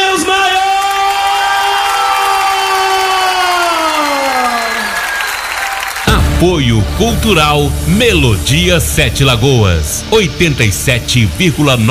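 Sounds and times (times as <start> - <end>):
audience giving a loud round of applause: 0.0 - 6.2
speech: 6.4 - 11.9.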